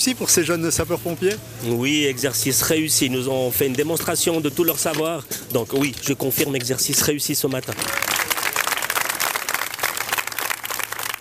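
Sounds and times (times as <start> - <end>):
speech: 0.0 - 8.2
crowd applause: 7.7 - 11.1.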